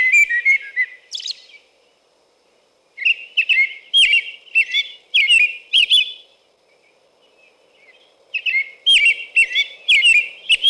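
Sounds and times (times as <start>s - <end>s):
American robin whistled song: 0.0s - 1.6s, 3.0s - 6.3s, 7.2s - 10.6s.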